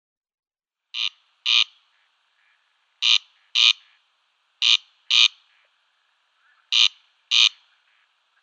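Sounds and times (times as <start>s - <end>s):
Corn crake display call, harsh grating crex-crex rasps: 1.0s - 4.0s, 4.6s - 5.7s, 6.4s - 8.4s.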